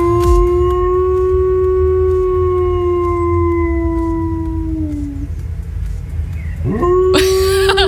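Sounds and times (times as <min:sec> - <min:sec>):
Border collie howling, imitating a fire siren: 0:00.0 - 0:05.3, 0:06.6 - 0:07.2
laughter: 0:07.2 - 0:07.8.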